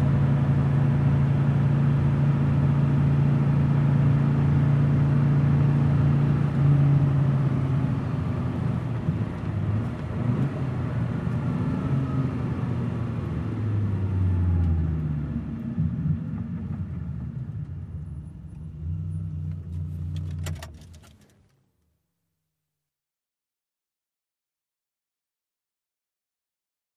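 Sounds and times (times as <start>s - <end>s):
sports car driving over 100 mph: 0.0s - 20.5s.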